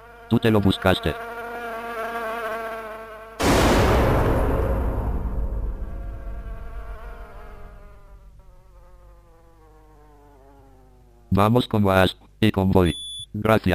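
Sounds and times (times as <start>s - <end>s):
housefly buzzing near a bowl of soup: 0.0s - 3.4s, 5.0s - 11.3s
speech: 0.3s - 1.3s, 11.4s - 13.7s
loud sustained hiss: 3.4s - 8.9s.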